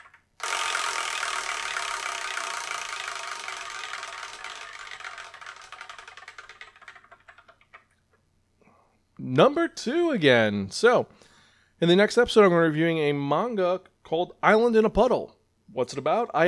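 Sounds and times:
prize wheel spinning: 0:00.0 - 0:07.9
speech: 0:09.2 - 0:16.4.

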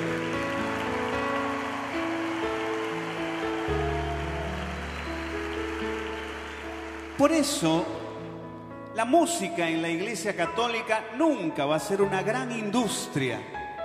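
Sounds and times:
crowd applause: 0:00.0 - 0:08.2
speech: 0:07.2 - 0:08.0, 0:09.0 - 0:13.6.

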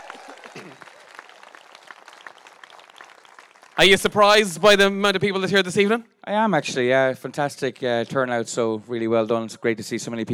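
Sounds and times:
crowd applause: 0:00.0 - 0:04.7
speech: 0:03.8 - 0:10.3.

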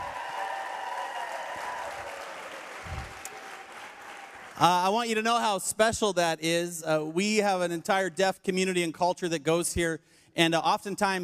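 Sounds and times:
audience applause at a church worship service: 0:00.0 - 0:04.8
speech: 0:04.6 - 0:11.2.

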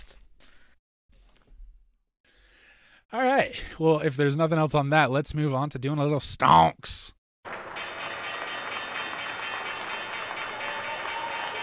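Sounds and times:
speech: 0:03.1 - 0:07.2
official New York Stock Exchange opening bell: 0:07.8 - 0:11.6.

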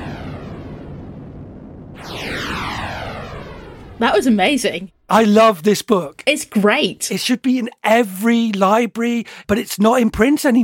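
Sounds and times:
rocket launch roar: 0:00.0 - 0:05.1
speech: 0:04.0 - 0:10.6.

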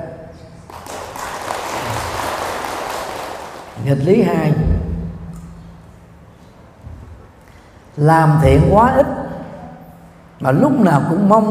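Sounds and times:
audience applause: 0:00.7 - 0:03.8
speech: 0:03.9 - 0:04.8, 0:08.0 - 0:09.2, 0:10.4 - 0:11.4.

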